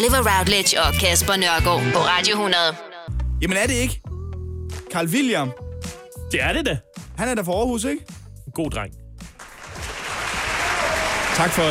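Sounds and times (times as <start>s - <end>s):
speech: 0.0s - 4.0s, 4.9s - 5.6s, 6.3s - 9.0s, 11.4s - 11.7s
audience applause: 9.4s - 11.7s.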